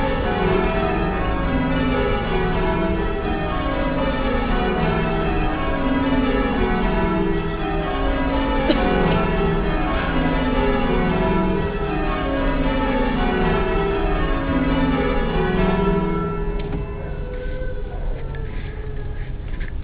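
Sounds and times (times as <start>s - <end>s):
bells ringing: 0.0s - 19.7s.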